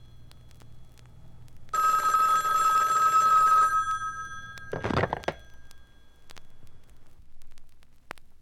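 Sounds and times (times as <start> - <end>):
phone ringing: 1.7 - 6.6.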